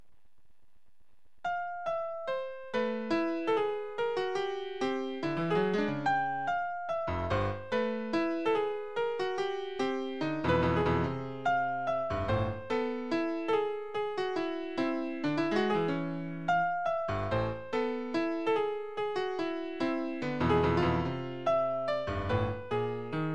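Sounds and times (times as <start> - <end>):
piano piece: 1.4 - 23.3.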